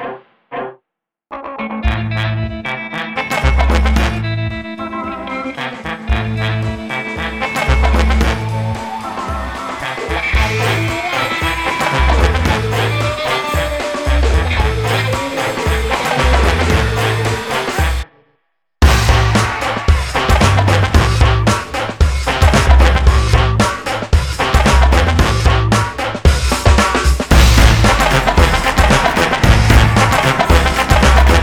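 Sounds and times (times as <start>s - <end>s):
fanfare: 1.9s - 18.1s, 18.8s - 26.2s, 27.3s - 31.4s.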